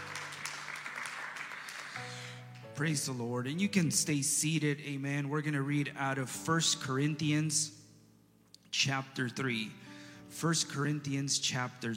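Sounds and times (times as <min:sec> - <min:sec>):
audience hand clapping: 0:00.0 - 0:02.8
speech: 0:02.8 - 0:07.8, 0:08.8 - 0:11.9.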